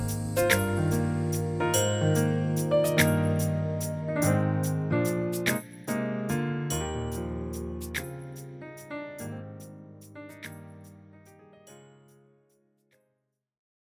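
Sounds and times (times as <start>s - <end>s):
music without drums: 0.0s - 9.0s.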